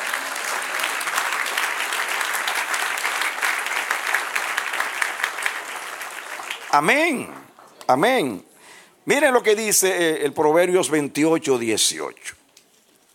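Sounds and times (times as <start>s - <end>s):
audience applause: 0.0s - 7.7s
speech: 6.8s - 12.4s.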